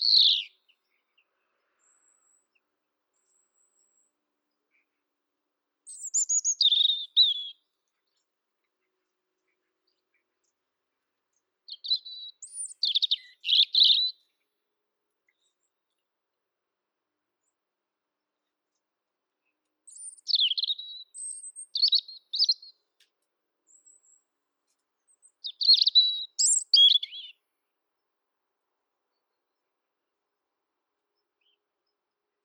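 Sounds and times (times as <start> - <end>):
Erithacus rubecula: 0.0 - 0.8, 5.9 - 7.6, 11.7 - 14.1, 25.4 - 27.4.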